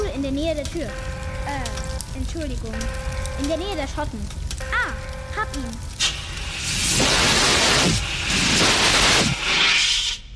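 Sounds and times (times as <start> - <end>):
speech: 0.3 - 4.4, 5.4 - 5.9, 7.8 - 8.7
mobile carbon dioxide fire extinguisher spraying: 6.0 - 10.3.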